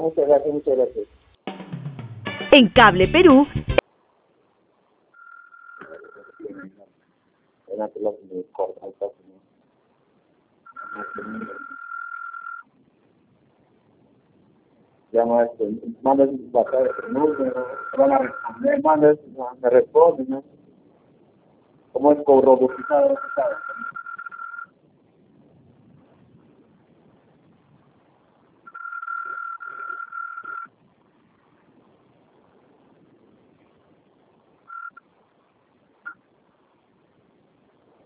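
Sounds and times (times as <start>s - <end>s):
recorded voice: 0.0s - 1.1s, 2.5s - 3.5s, 5.8s - 6.9s, 7.7s - 9.4s, 10.8s - 11.8s, 15.2s - 20.5s, 22.0s - 24.0s
speech: 0.0s - 1.2s, 2.5s - 3.7s, 7.7s - 9.2s, 10.9s - 11.8s, 15.1s - 20.6s, 22.0s - 24.0s
Cable Perú call-transfer and on-hold beeps: 5.2s - 6.6s, 10.7s - 12.6s, 16.6s - 18.6s, 22.7s - 24.7s, 28.7s - 30.7s, 34.7s - 35.0s.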